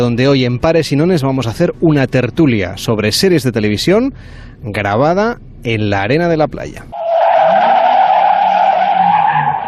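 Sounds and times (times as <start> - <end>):
speech: 0.0 - 7.0
radio van tires squealing: 7.0 - 9.6.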